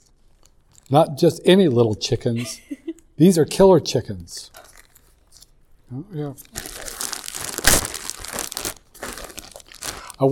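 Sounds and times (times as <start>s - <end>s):
speech: 0.9s - 4.7s, 5.9s - 6.7s
snack bag crinkling: 4.6s - 5.5s, 6.4s - 10.3s.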